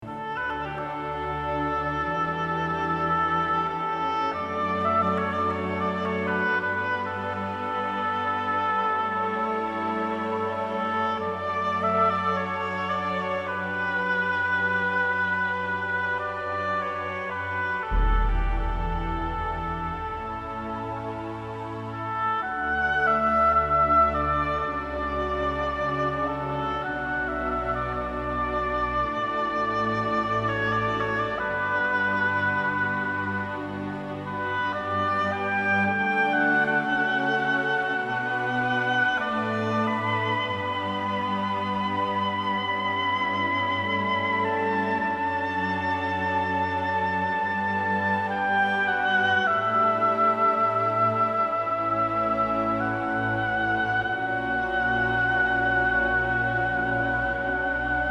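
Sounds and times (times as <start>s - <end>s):
oboe: 0.0s - 58.0s.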